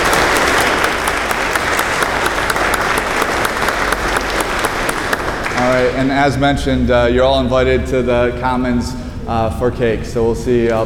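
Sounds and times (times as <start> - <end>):
round of applause: 0.0 - 6.1
speech: 5.8 - 10.8.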